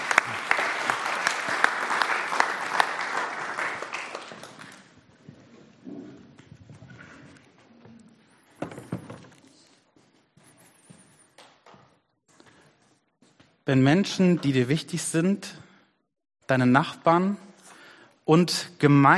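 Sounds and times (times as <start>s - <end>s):
crowd clapping: 0.0s - 5.0s
speech: 13.7s - 15.6s, 16.5s - 17.4s, 18.3s - 19.1s.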